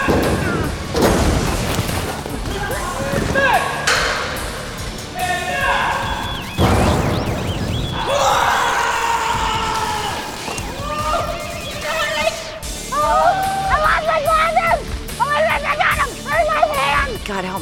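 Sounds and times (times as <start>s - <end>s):
gunshots in an action stunt sequence: 0.0s - 12.6s
thuds: 0.0s - 12.6s
voices: 0.0s - 17.5s.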